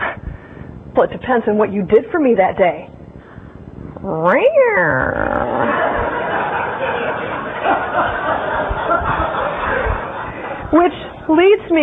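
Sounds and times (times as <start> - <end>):
speech: 1.0 - 2.9, 4.0 - 5.7, 10.7 - 11.8
person imitating a cat yowling in pain: 4.0 - 5.8
laughter: 5.5 - 10.8.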